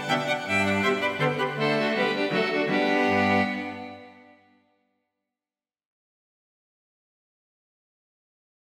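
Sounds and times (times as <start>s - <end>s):
string quartet minuet: 0.0s - 4.6s.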